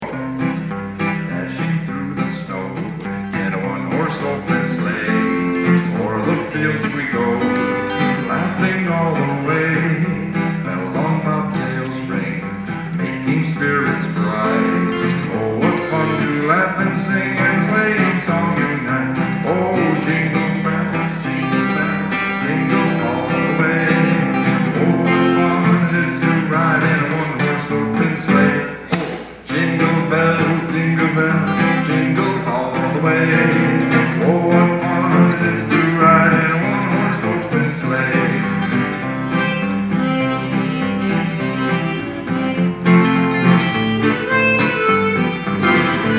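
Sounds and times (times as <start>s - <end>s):
Christmas song: 0.0s - 46.1s.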